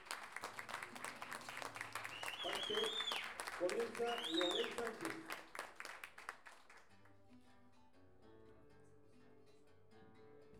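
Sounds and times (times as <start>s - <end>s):
audience applause: 0.0s - 6.9s
speech: 2.4s - 3.0s, 3.6s - 5.4s.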